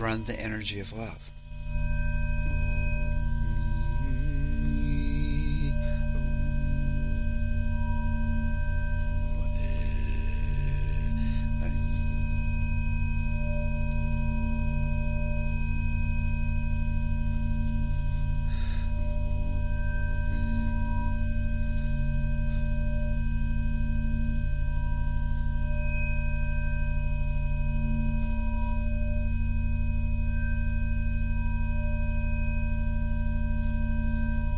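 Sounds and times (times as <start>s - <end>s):
speech: 0.0s - 1.8s
steady electronic tones in stacked harmonic layers: 0.0s - 13.7s
low droning hum: 0.0s - 34.5s
breathy bursts: 9.4s - 12.0s.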